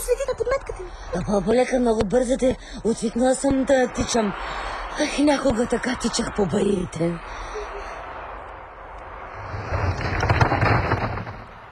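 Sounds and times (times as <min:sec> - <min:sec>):
steady rush of wind: 0:00.0 - 0:11.7
speech: 0:00.7 - 0:07.5
flimsy hut collapsing with a loud rumbling crash: 0:09.4 - 0:11.7
low thudding and crackling debris: 0:09.6 - 0:11.7.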